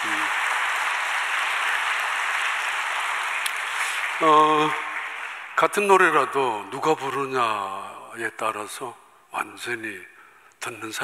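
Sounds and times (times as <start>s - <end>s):
audience applauding the choir: 0.0s - 6.3s
speech: 4.2s - 4.8s, 5.6s - 11.0s.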